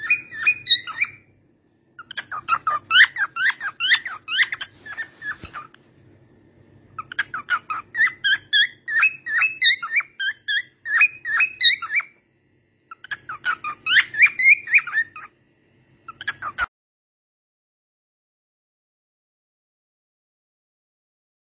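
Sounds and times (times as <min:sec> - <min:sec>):
cockatiel: 0:00.0 - 0:01.4, 0:02.0 - 0:05.9, 0:07.0 - 0:12.2, 0:12.9 - 0:15.4, 0:16.0 - 0:16.7.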